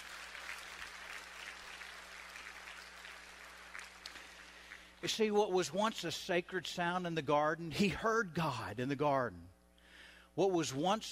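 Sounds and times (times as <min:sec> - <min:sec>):
audience clapping: 0:00.0 - 0:05.0
speech: 0:05.0 - 0:09.6, 0:10.4 - 0:11.1.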